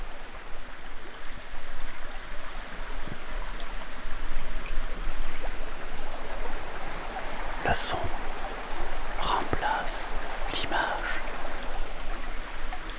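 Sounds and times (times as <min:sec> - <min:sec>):
small river flowing: 0:00.0 - 0:12.9
speech: 0:07.7 - 0:08.2.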